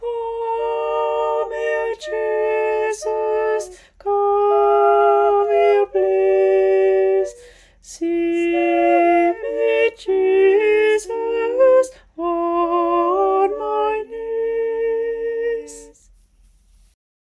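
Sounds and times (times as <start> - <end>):
tenor and bass voices singing: 0.0 - 16.0.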